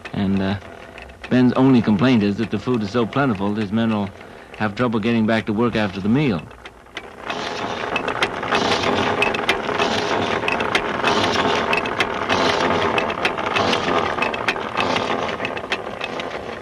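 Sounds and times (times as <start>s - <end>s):
speech: 0.2s - 6.6s
rotary well drill boring into ground: 7.1s - 16.6s.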